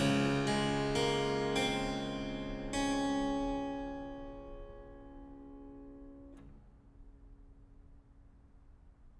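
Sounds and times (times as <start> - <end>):
harpsichord: 0.0 - 6.3.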